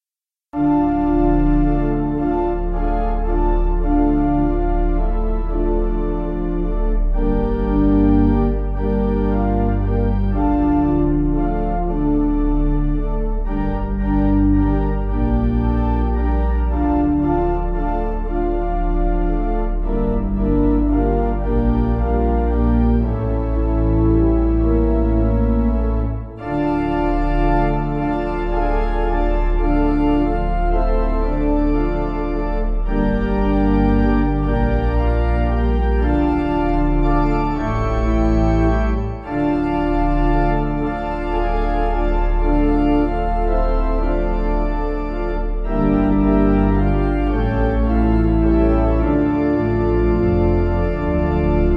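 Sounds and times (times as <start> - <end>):
soft pipe organ church backing music: 0.6 - 51.7.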